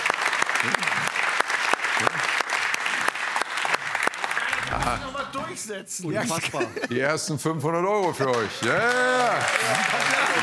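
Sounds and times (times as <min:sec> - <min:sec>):
studio audience applause: 0:00.0 - 0:05.4, 0:07.9 - 0:10.4
speech: 0:00.6 - 0:00.9, 0:04.9 - 0:10.4
laughter: 0:06.1 - 0:07.2.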